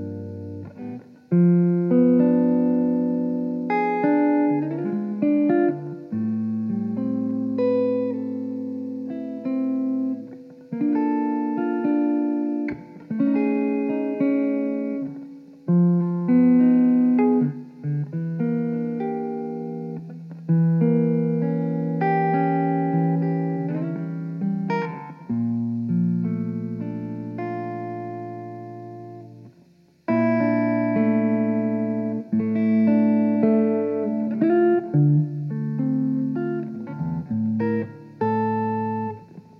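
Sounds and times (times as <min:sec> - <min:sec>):
jazzy electric guitar chords in D minor: 0:00.0 - 0:39.5.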